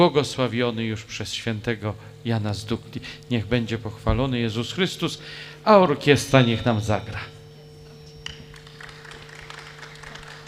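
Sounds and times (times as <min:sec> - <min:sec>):
speech: 0:00.0 - 0:07.3
constant low electrical hum: 0:00.0 - 0:10.4
crowd clapping: 0:08.2 - 0:10.4.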